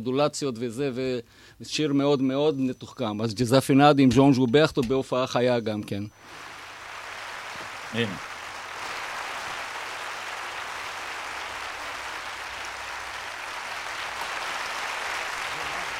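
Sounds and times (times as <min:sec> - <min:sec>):
speech: 0:00.0 - 0:06.4, 0:07.9 - 0:08.3
audience applause for a singer at a live concert: 0:06.2 - 0:15.9.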